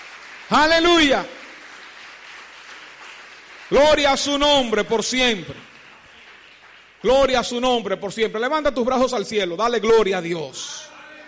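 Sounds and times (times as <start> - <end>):
audience applause: 0.0 - 7.6
speech: 0.5 - 1.4, 3.7 - 5.7, 7.0 - 10.9.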